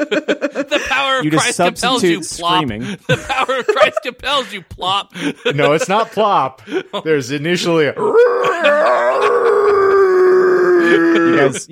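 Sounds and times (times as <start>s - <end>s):
laughter: 0.0s - 10.0s, 10.8s - 11.7s
speech: 0.1s - 9.8s, 10.9s - 11.7s
voice imitating a moan: 8.0s - 11.6s.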